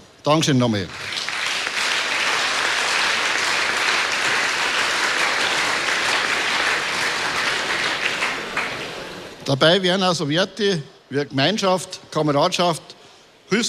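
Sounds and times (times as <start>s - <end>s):
speech: 0.2s - 1.2s, 9.5s - 12.9s, 13.5s - 13.6s
sustained applause from a sizable audience: 0.9s - 9.4s.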